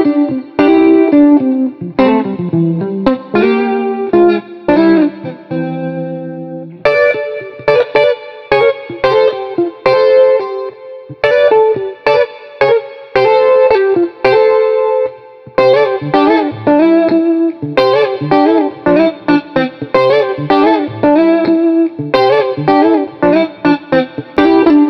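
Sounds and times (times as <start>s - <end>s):
funky jazz street guitar on a Telecaster: 0.0s - 24.8s.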